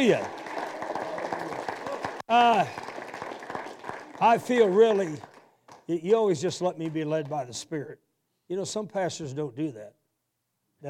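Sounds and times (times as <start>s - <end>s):
speech: 0.0s - 0.4s, 2.3s - 2.8s, 4.2s - 5.3s, 5.9s - 10.0s
audience clapping: 0.0s - 7.5s.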